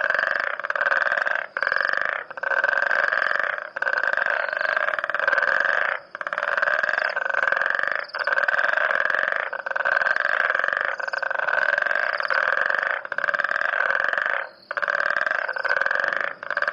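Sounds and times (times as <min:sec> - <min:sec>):
frog calling in buzzy bursts: 0:00.0 - 0:16.7.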